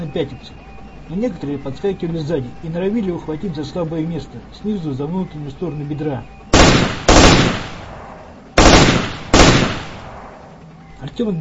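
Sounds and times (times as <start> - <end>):
speech: 0.1 - 6.4, 11.0 - 11.4
automatic rifle gunfire: 6.6 - 10.4.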